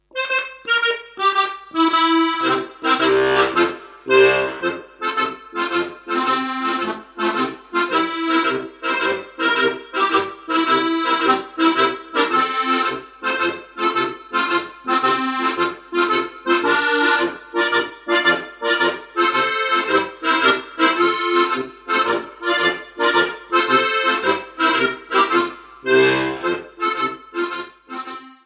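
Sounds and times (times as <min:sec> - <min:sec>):
two-part tarantella dance tune: 0:00.0 - 0:28.3.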